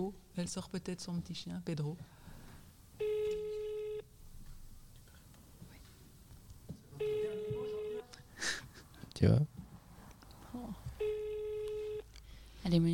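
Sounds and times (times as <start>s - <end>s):
speech: 0.0s - 2.2s, 9.2s - 9.5s, 12.7s - 12.9s
telephone ringback tone on an outgoing call: 3.0s - 4.1s, 7.0s - 8.1s, 11.0s - 12.1s.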